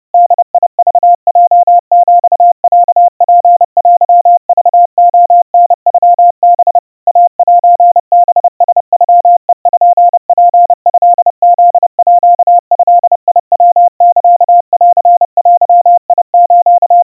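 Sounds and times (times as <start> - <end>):
crispy 700 Hz Morse code beeps: 0.2 - 17.0.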